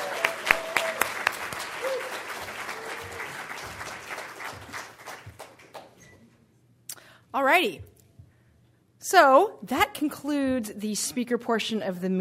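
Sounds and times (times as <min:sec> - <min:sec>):
audience applause: 0:00.0 - 0:06.0
speech: 0:07.4 - 0:07.9, 0:09.1 - 0:12.1.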